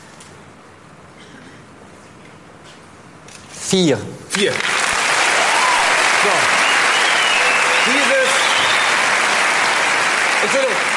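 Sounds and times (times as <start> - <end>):
speech: 3.7 - 4.8, 10.4 - 10.9
applause: 4.3 - 10.9.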